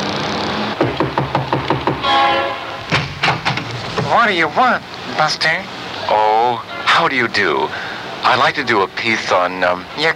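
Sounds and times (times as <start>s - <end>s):
knocking on a weather-beaten wooden door: 0.8s - 2.1s, 2.9s - 4.2s
speech: 4.1s - 10.1s.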